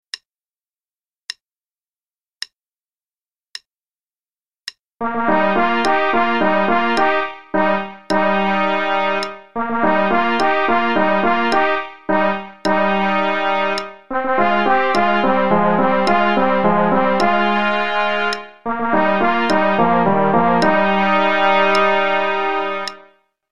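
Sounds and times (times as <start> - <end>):
orchestral overture play-along: 5.0 - 23.0.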